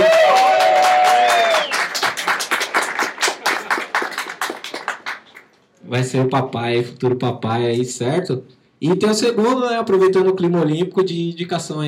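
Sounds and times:
audience cheering: 0.0s - 4.4s
audience applause: 0.0s - 5.5s
speech: 5.9s - 11.8s.

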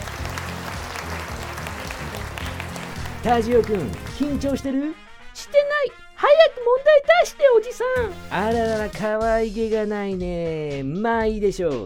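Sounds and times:
audience applause: 0.0s - 4.7s
speech: 3.2s - 11.8s.

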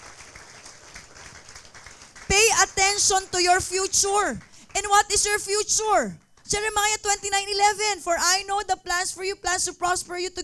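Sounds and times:
audience applause: 0.0s - 5.0s
speech: 3.0s - 10.4s.

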